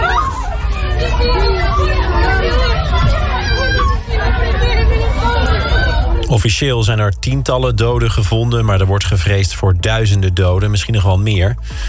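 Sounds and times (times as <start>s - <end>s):
panicked crowd shouting on a street: 0.0s - 6.3s
speech: 6.3s - 11.8s.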